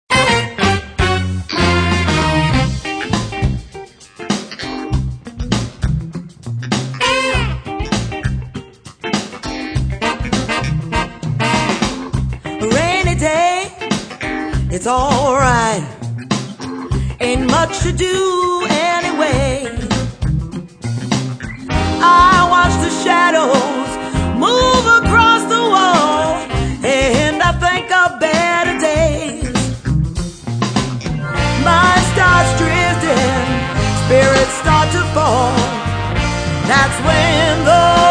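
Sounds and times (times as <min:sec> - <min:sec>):
blues music: 0:00.1 - 0:38.0.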